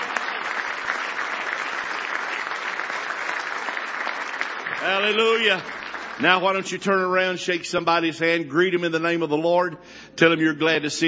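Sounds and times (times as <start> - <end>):
audience applause: 0.0 - 7.1
speech: 4.8 - 11.0.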